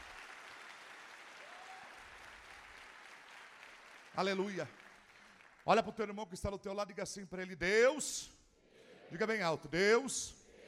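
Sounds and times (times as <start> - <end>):
applause: 0.0 - 6.2
speech: 4.2 - 4.8, 5.6 - 8.4, 9.1 - 10.4.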